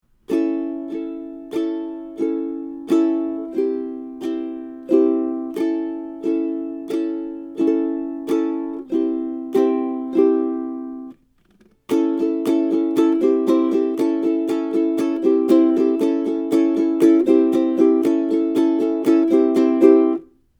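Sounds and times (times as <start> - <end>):
ukulele strumming: 0.1 - 20.4.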